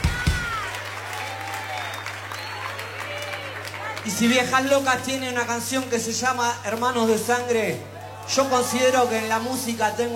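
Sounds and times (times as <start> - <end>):
audience applause: 0.0 - 5.5
speech: 4.0 - 10.1.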